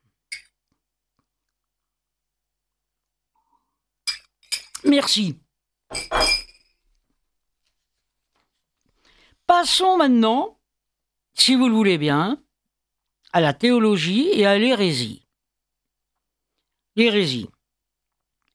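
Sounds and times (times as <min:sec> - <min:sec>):
glass clinking while drinking water: 0:00.3 - 0:00.6, 0:04.0 - 0:04.8, 0:05.9 - 0:06.8
speech: 0:04.8 - 0:06.3, 0:09.6 - 0:10.6, 0:11.4 - 0:12.4, 0:13.3 - 0:15.2, 0:17.0 - 0:17.5.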